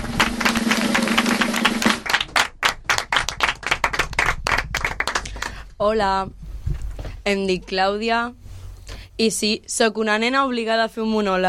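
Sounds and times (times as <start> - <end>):
audience applause: 0.0 - 5.5
speech: 5.8 - 6.4, 7.2 - 8.4, 9.2 - 11.4.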